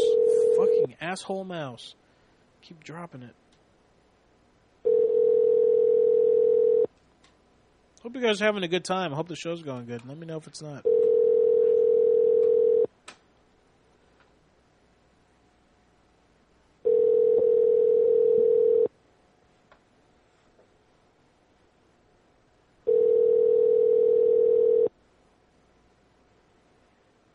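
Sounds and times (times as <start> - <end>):
phone line ringing unanswered: 0.0 - 0.9, 4.8 - 6.9, 10.8 - 12.9, 16.8 - 18.9, 22.9 - 24.9
speech: 1.0 - 2.0, 2.6 - 3.4, 8.0 - 10.9.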